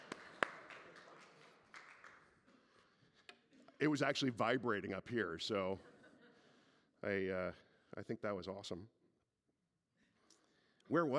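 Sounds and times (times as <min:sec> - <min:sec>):
faint applause from a small audience: 0:00.0 - 0:02.6
speech: 0:03.8 - 0:05.9, 0:07.0 - 0:09.0, 0:10.9 - 0:11.1.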